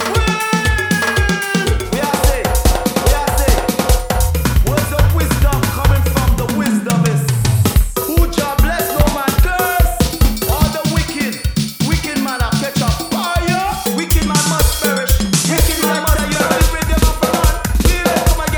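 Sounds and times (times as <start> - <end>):
soca drum loops: 0.0 - 18.5.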